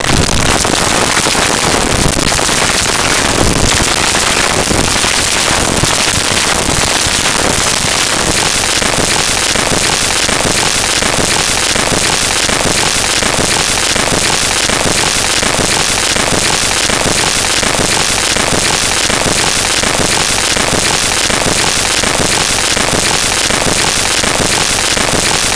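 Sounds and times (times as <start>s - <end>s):
heartbeat speeding up: 0.0s - 25.5s.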